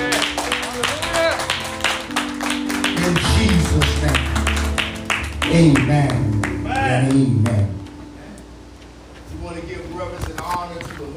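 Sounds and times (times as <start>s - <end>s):
audience clapping hands: 0.0s - 7.9s
sustained musical tones: 0.0s - 10.1s
speech: 5.5s - 7.8s.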